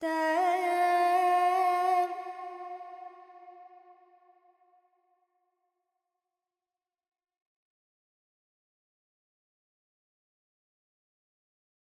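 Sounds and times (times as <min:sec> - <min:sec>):
Carnatic female vocal alaps in Dorian mode: 0:00.0 - 0:04.0.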